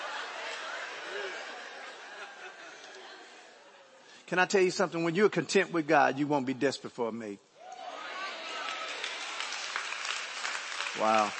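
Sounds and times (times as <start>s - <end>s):
laughter: 0.0s - 4.0s
speech: 4.3s - 7.5s, 11.0s - 11.3s
audience clapping in a large room: 8.4s - 11.3s.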